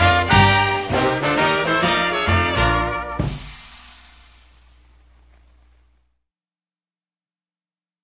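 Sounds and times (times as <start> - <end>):
simple melody: 0.0 - 3.4.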